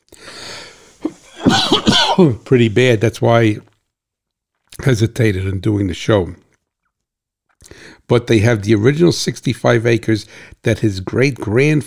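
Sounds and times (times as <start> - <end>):
person coughing: 1.0 - 2.5
speech: 2.2 - 3.7, 4.8 - 6.4, 7.7 - 11.8.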